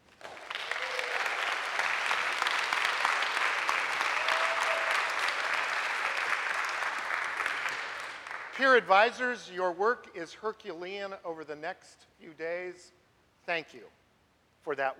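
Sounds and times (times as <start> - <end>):
audience applause: 0.0 - 8.8
speech: 8.6 - 14.0, 14.6 - 14.9.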